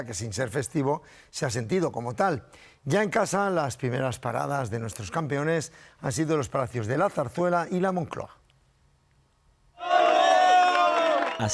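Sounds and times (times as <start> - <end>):
speech: 0.0 - 8.4, 11.4 - 11.5
palace staff at Zarzuela cheering the World Cup champions: 9.8 - 11.5.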